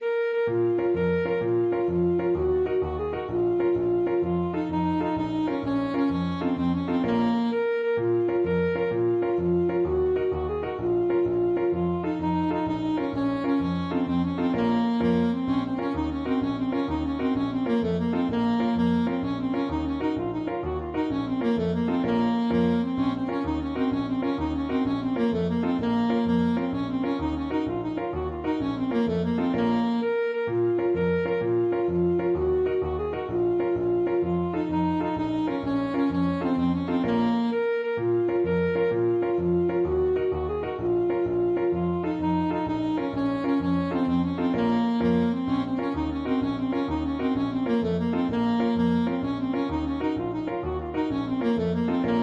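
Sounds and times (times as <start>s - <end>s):
alto saxophone: 0.0s - 52.2s.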